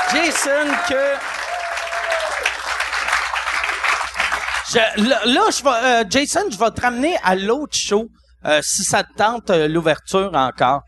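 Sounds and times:
audience applause: 0.0 - 5.0
speech: 0.1 - 1.4, 4.7 - 10.8.

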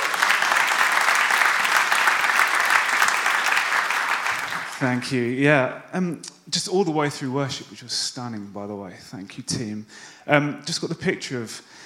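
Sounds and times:
audience round of applause: 0.0 - 5.0
speech: 4.8 - 11.8.

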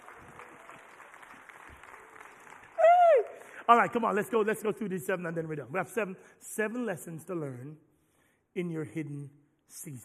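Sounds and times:
few people clapping: 0.0 - 4.5
speech: 3.7 - 7.9, 8.5 - 10.0.

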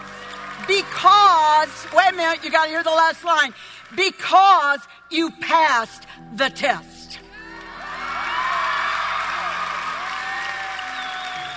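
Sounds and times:
audience clapping: 0.0 - 4.7, 7.5 - 11.5
speech: 1.6 - 6.9.

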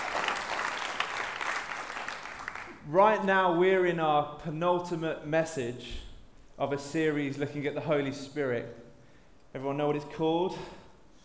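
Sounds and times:
audience clapping: 0.0 - 2.8
speech: 2.9 - 8.8, 9.5 - 10.8.

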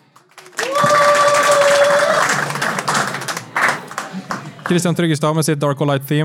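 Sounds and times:
crowd applause: 0.0 - 5.0
cheers and whistles: 0.6 - 2.3
speech: 4.7 - 6.2.

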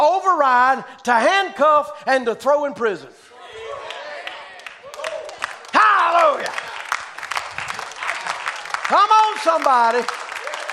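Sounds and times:
speech: 0.4 - 3.3, 8.9 - 10.2
audience clapping: 3.8 - 10.7.

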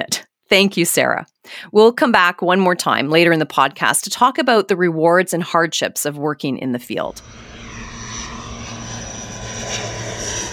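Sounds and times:
speech: 0.5 - 7.5
propeller airplane flying: 7.1 - 10.5.

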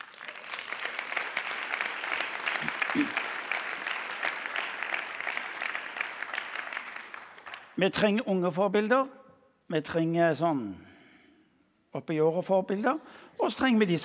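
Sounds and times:
audience applause: 0.0 - 7.7
speech: 3.0 - 3.2, 7.8 - 10.9, 12.0 - 14.0.

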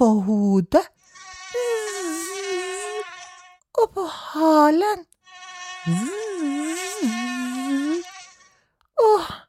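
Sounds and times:
speech: 0.0 - 1.0, 4.0 - 5.1, 5.8 - 6.2
mosquito buzzing: 0.9 - 3.7, 5.1 - 8.7.

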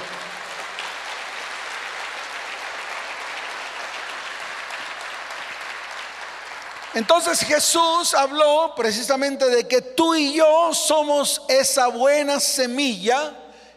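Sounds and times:
audience applause: 0.0 - 7.7
speech: 6.9 - 13.4.

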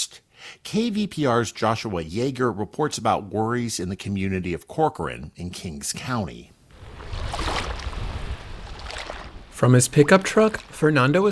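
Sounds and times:
speech: 0.6 - 6.6, 9.6 - 11.2
floodwater waves lapping: 6.7 - 11.2.

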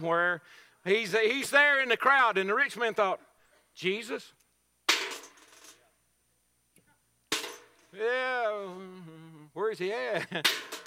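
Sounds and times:
speech: 0.0 - 4.4, 7.9 - 10.8
coins dropped into offering: 4.9 - 5.8, 7.3 - 7.9, 10.4 - 10.8.

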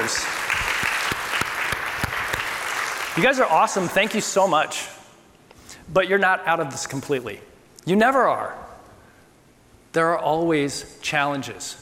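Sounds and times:
crowd applauding: 0.0 - 4.2
speech: 0.1 - 0.3, 3.2 - 5.0, 5.9 - 8.7, 10.0 - 11.7.

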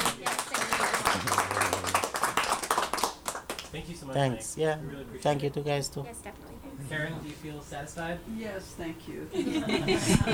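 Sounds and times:
round of applause: 0.0 - 3.8
speech: 3.8 - 10.3
laughter: 9.3 - 10.3.

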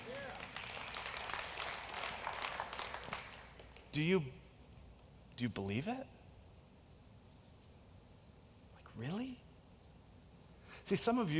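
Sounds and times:
audience clapping: 0.0 - 3.9
speech: 3.9 - 4.4, 5.4 - 6.2, 9.0 - 9.4, 10.9 - 11.3.

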